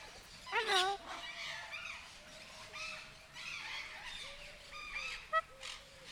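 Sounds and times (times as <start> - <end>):
captive sulphur-crested cockatoo squawking at a zoo: 0.5 - 2.0, 2.7 - 5.9.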